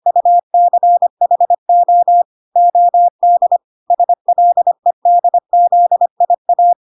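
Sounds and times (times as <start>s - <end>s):
morse code beeps at 25 words per minute: 0.0s - 6.8s.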